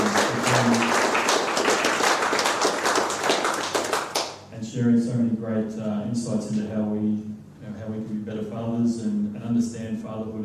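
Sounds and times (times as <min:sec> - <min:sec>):
audience applause: 0:00.0 - 0:04.3
speech: 0:04.8 - 0:07.1, 0:07.8 - 0:10.4.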